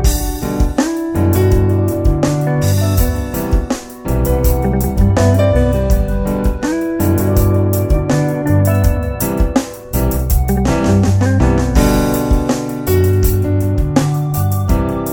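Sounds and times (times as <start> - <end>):
relaxing calm romantic Caribbean music loop: 0.0 - 15.1.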